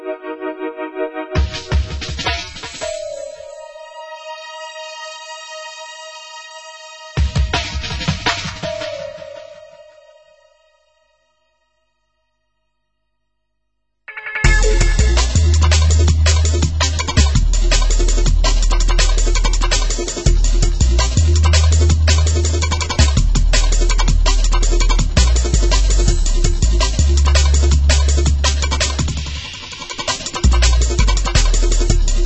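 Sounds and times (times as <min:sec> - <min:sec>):
drum and bass mix: 0:01.4 - 0:03.7, 0:07.1 - 0:09.8, 0:14.4 - 0:32.2.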